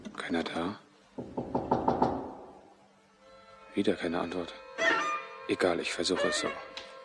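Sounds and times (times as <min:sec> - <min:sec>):
speech: 0:00.2 - 0:00.9, 0:03.7 - 0:04.7, 0:05.5 - 0:06.8
knocking on the wooden door of cell number 15 in a corridor: 0:01.2 - 0:02.5.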